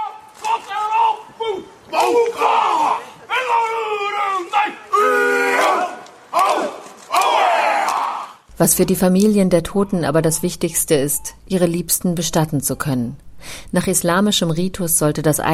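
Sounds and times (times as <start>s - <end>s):
Maori haka chanted by motorcycle gang: 0.0s - 8.4s
speech: 8.6s - 15.5s.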